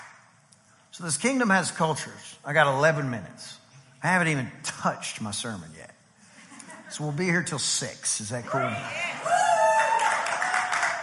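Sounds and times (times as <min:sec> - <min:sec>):
speech: 0:01.0 - 0:06.0, 0:06.9 - 0:09.4
crowd shouting and whooping: 0:08.5 - 0:11.0
long high woo cheer: 0:08.5 - 0:11.0.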